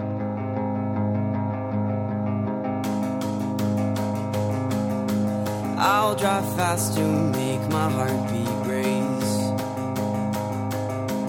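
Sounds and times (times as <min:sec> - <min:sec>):
effect-laden guitar chords: 0:00.0 - 0:11.2
crisp drums with bright cymbal hits: 0:02.9 - 0:11.2
speech: 0:06.0 - 0:09.0.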